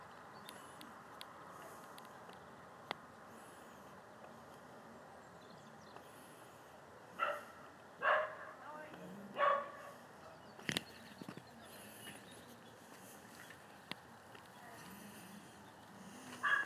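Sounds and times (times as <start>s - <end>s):
dog barking: 7.2s - 8.6s, 9.3s - 10.0s, 16.4s - 16.6s.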